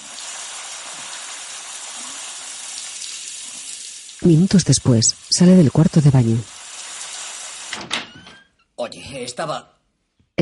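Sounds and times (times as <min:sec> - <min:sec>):
shower water running over body: 0:00.0 - 0:08.2
speech: 0:04.2 - 0:06.5, 0:08.9 - 0:09.8.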